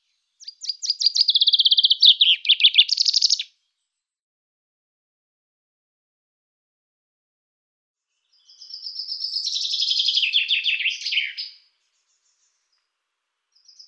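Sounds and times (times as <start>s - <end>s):
common chaffinch song: 0.0s - 4.1s, 8.1s - 12.9s, 13.5s - 13.8s.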